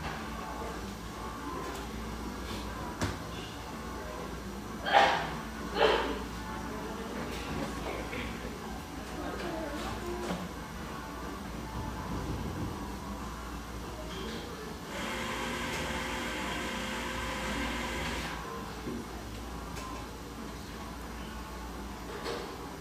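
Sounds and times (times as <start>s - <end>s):
murmur of voices in a coffeehouse: 0.0s - 22.7s
espresso machine steaming: 14.9s - 18.4s.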